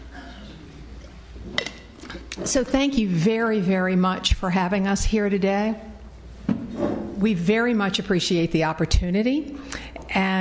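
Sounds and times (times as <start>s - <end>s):
person drinking water from a glass: 0.1s - 2.4s
speech: 2.4s - 5.9s, 7.2s - 10.3s.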